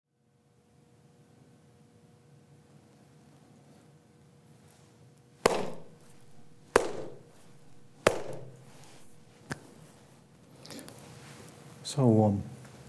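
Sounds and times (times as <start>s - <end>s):
three hand claps ending meditation: 5.5s - 9.9s
speech: 11.9s - 12.5s.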